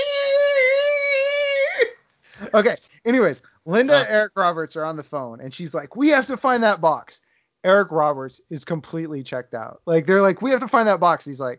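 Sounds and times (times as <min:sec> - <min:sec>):
voice imitating screeching office chair wheels: 0:00.0 - 0:02.7, 0:03.8 - 0:04.2
speech: 0:02.5 - 0:11.5.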